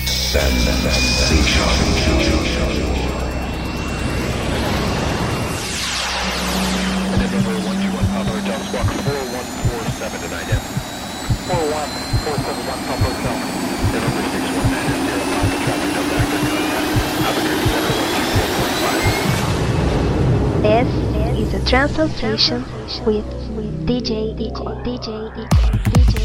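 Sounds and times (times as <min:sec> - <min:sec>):
airplane jet engines roaring during takeoff: 0:00.1 - 0:21.8
speech: 0:00.3 - 0:02.9, 0:08.7 - 0:10.8, 0:11.5 - 0:17.7, 0:20.6 - 0:26.1.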